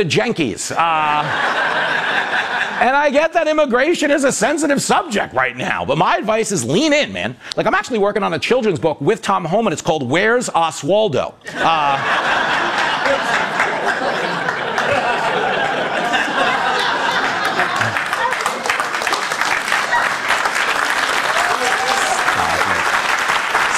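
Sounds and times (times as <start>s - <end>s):
speech: 0.0s - 13.8s
laughter: 1.0s - 2.9s, 11.4s - 18.5s
crowd applauding: 12.0s - 23.7s.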